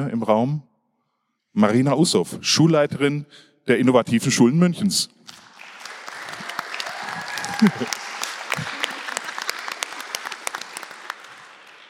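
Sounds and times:
speech: 0.0 - 0.7, 1.6 - 5.4, 7.6 - 8.0
audience applauding: 5.3 - 11.8
whoops and cheers: 6.1 - 10.6
laughter: 6.4 - 11.3.

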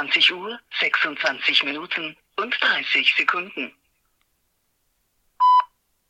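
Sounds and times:
speech: 0.0 - 3.8
German speaking-clock time signal beep: 5.4 - 5.7.

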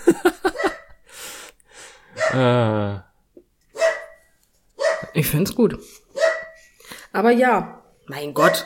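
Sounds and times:
dog barking: 0.5 - 0.9, 2.1 - 2.4, 3.7 - 4.2, 4.8 - 5.2, 6.2 - 6.6, 8.4 - 8.6
speech: 2.3 - 3.1, 5.2 - 6.0, 7.1 - 8.6.

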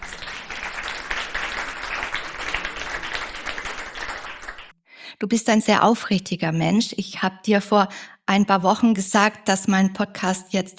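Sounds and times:
crowd applauding: 0.0 - 4.7
speech: 5.2 - 10.7.

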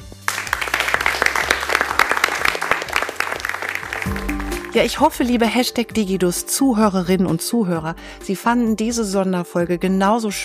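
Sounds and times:
audience applause: 0.0 - 5.1
speech: 4.7 - 10.4.

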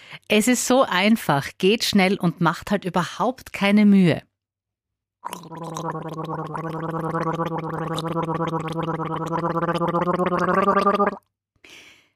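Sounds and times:
speech: 0.1 - 4.3, 5.2 - 11.8
person gargling water: 5.2 - 11.3.

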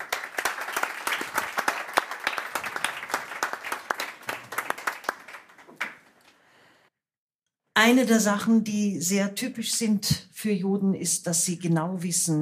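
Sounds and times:
audience applause: 0.0 - 6.3
speech: 7.8 - 12.3.

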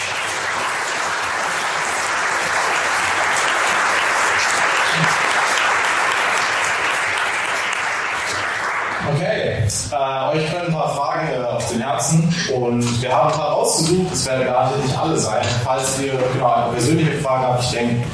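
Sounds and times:
audience applause: 0.0 - 9.2
speech: 10.3 - 18.1.

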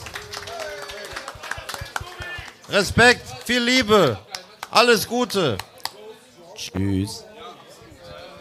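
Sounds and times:
audience applause: 0.0 - 4.2
speech: 2.7 - 5.7, 6.6 - 7.3.

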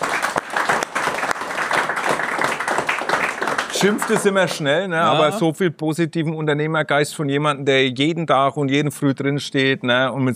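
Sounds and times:
audience applause: 0.0 - 4.6
speech: 3.8 - 10.3.

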